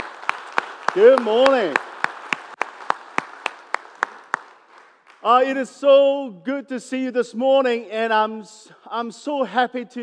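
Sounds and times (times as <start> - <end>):
audience clapping in unison: 0.0 - 5.6
speech: 1.0 - 1.8, 5.2 - 10.0.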